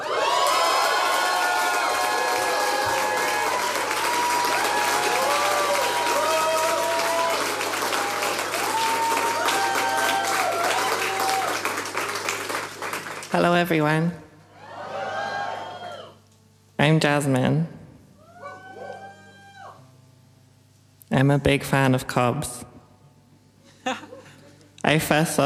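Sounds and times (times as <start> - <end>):
audience applause: 0.0 - 13.6
speech: 13.4 - 14.2, 16.8 - 17.8, 21.2 - 22.7, 24.9 - 25.4.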